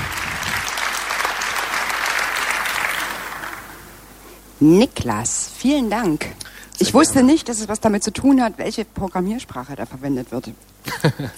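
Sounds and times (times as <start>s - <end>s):
audience applause: 0.0s - 4.1s
speech: 4.6s - 11.3s.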